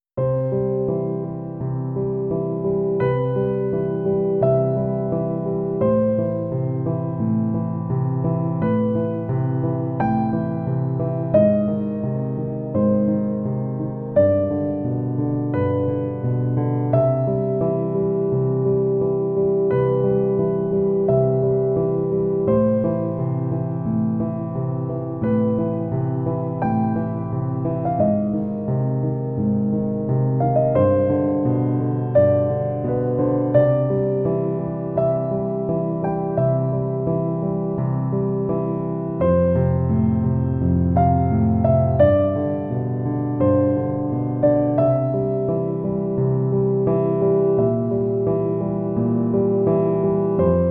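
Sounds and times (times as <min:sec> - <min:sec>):
piano study music: 0:00.0 - 0:50.6.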